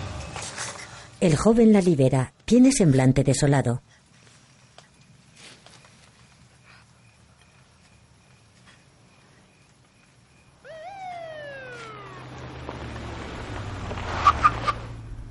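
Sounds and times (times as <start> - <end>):
speech: 1.2 - 4.0
police car siren arriving: 10.6 - 14.7.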